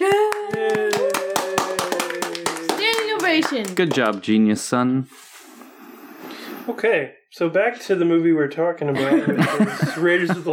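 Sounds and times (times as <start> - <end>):
hand clapping: 0.0 - 4.3
speech: 3.4 - 5.2, 6.7 - 10.5
laughter: 8.9 - 10.5.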